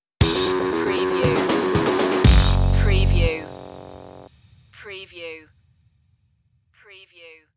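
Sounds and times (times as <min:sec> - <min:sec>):
funk stinger music: 0:00.2 - 0:04.3.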